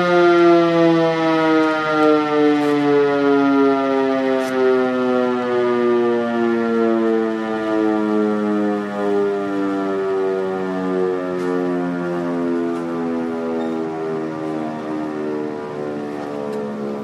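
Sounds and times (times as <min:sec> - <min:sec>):
fire alarm siren tones: 0:00.0 - 0:17.0.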